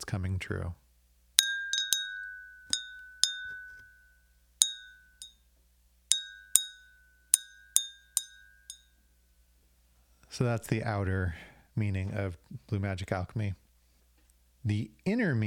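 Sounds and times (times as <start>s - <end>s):
speech: 0.1s - 0.8s, 10.4s - 13.6s, 14.6s - 15.4s
magic bell ringing: 1.4s - 5.4s, 6.1s - 8.9s.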